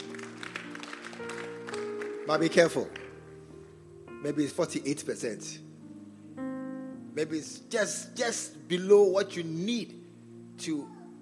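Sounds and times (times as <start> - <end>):
audience applauding: 0.0 - 3.2
speech: 2.3 - 3.0, 4.2 - 5.7, 7.2 - 10.0, 10.6 - 11.2.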